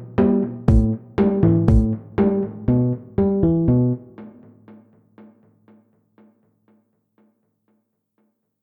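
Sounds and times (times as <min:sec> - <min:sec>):
funny chiptune music: 0:00.1 - 0:04.2.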